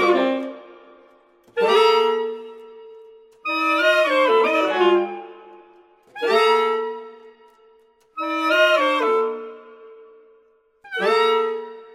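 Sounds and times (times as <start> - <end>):
saxophone quartet playing: 0.0 - 0.7, 3.4 - 5.3, 6.1 - 7.1, 8.2 - 10.0, 10.9 - 11.9.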